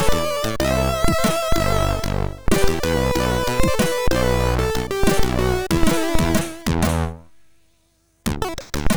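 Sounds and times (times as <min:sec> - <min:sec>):
chiptune music from a SID chip: 0:00.0 - 0:07.2.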